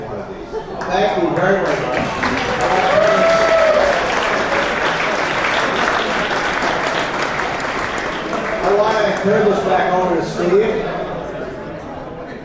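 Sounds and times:
speech: 0.9 - 3.1, 8.8 - 10.9
audience applauding itself after being praised as the best crowd: 1.4 - 9.7.

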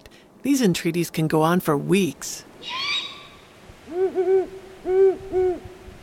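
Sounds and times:
speech: 0.4 - 2.9, 4.1 - 5.7
great horned owl hooting: 2.6 - 6.0.

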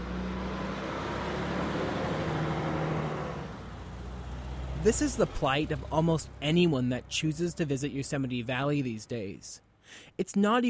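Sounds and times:
slow car traffic: 0.0 - 10.1
speech: 4.8 - 10.6.

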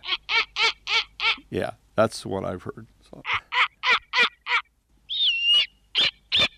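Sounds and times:
owl screaming bark-like calls: 0.0 - 1.5, 3.2 - 6.5
speech: 1.5 - 3.4.

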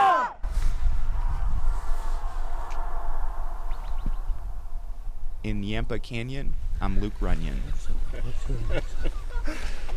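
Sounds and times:
echoes: 0.4 - 7.2
speech: 5.4 - 9.8
laughter: 7.6 - 9.9.

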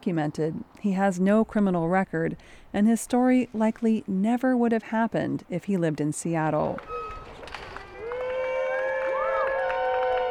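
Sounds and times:
speech: 0.0 - 7.1
scattered clapping: 6.8 - 10.2
families cheering and whooping: 7.8 - 10.2.

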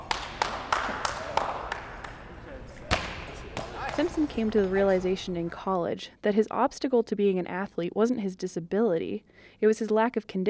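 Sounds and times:
hand claps signalling goalball passes: 0.0 - 2.2
speech: 4.0 - 10.4.

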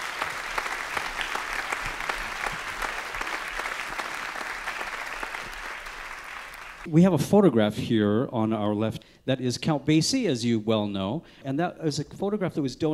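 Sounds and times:
audience applauding: 0.0 - 6.9
speech: 6.9 - 12.9.

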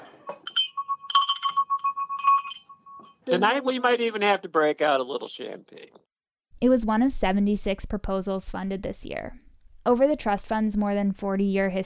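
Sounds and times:
hand bell ringing: 0.4 - 3.3
speech: 3.3 - 6.0, 6.6 - 11.8.

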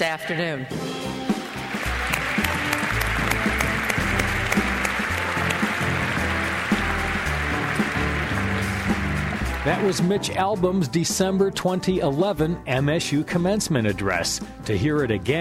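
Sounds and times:
speech: 0.0 - 1.2, 9.6 - 15.3
audience applause at a commencement: 1.3 - 10.4.

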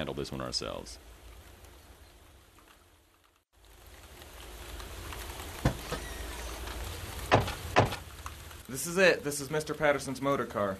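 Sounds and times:
speech: 0.0 - 1.2, 8.7 - 10.7
rain falling: 0.0 - 10.7.

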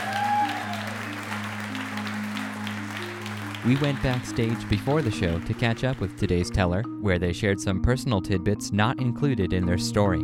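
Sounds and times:
audience applause: 0.0 - 6.2
speech: 3.6 - 10.2.

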